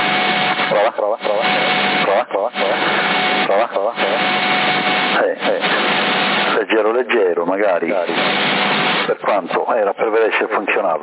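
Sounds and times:
steady CB radio static hum: 0:00.0 - 0:11.0
voice over hissy band-limited CB radio channel with echo effect: 0:00.6 - 0:04.3, 0:05.1 - 0:08.4, 0:09.0 - 0:11.0
speech: 0:00.8 - 0:01.6, 0:07.5 - 0:11.0.

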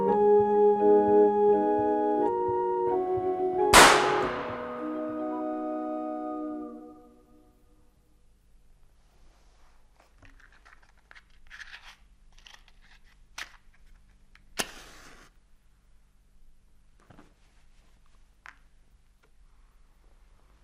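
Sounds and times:
barrel-organ notes: 0:00.0 - 0:07.4
gunshot: 0:03.7 - 0:05.4.

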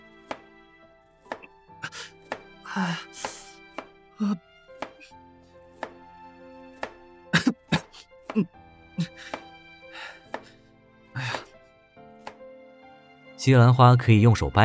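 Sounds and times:
knife chopping onion and potato on a cutting board: 0:00.2 - 0:00.5, 0:01.2 - 0:02.5, 0:03.2 - 0:04.0, 0:04.7 - 0:06.0, 0:06.7 - 0:07.0, 0:07.8 - 0:09.5, 0:10.2 - 0:10.5, 0:12.2 - 0:12.4
speech: 0:02.8 - 0:03.3, 0:04.2 - 0:04.5, 0:08.4 - 0:08.6, 0:13.4 - 0:14.6.

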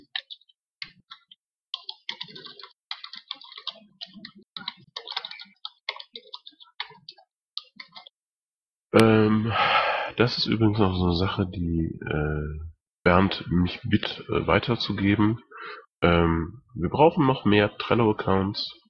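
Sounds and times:
typing a note into a Trello card on a computer keyboard: 0:00.0 - 0:08.1
speech: 0:09.0 - 0:09.6, 0:10.2 - 0:18.8.

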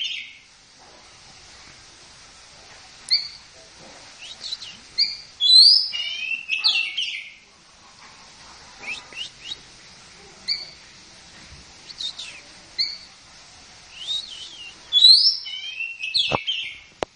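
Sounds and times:
Oriental magpie-robin song of clear whistles and chattery notes: 0:03.1 - 0:03.4, 0:04.2 - 0:07.4, 0:08.8 - 0:09.6, 0:10.5 - 0:10.8, 0:11.8 - 0:13.1, 0:13.9 - 0:16.8.

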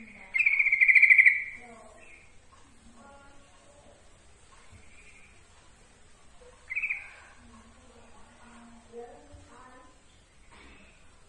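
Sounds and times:
yellow-vented bulbul giving bright notes: 0:00.0 - 0:02.4, 0:06.6 - 0:07.4.

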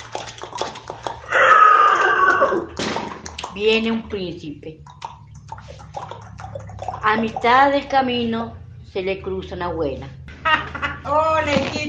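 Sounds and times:
horse neighing: 0:01.2 - 0:02.7
speech: 0:03.6 - 0:05.1, 0:07.0 - 0:11.8.

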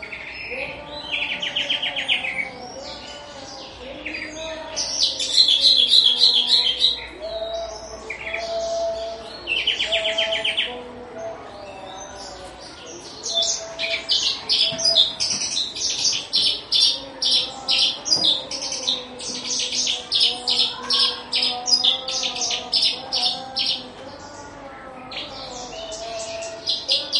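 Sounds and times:
Horsfield's bush lark song: 0:00.0 - 0:27.1.

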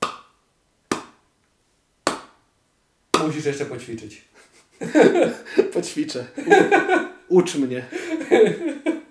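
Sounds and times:
buttocks clapping together: 0:00.0 - 0:00.3, 0:00.9 - 0:01.2, 0:02.1 - 0:02.4, 0:03.2 - 0:03.4
speech: 0:03.2 - 0:09.0
laughter: 0:04.4 - 0:07.2, 0:07.8 - 0:09.1.

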